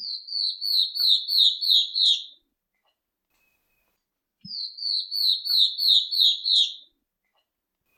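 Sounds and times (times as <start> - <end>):
star-throated antwren singing: 0.0 - 2.3, 4.5 - 6.8.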